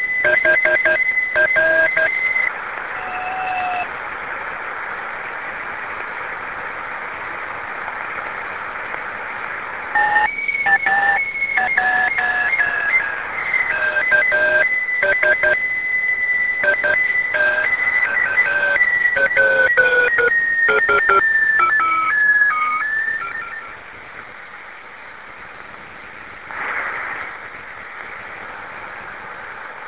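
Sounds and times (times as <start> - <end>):
ITUPSAT satellite beacon signal: 0.0 - 3.9, 10.0 - 23.8.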